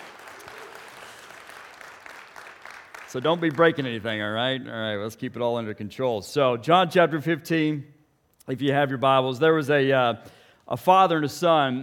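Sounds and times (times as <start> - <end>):
church audience applause: 0.0 - 3.9
speech: 3.1 - 11.8.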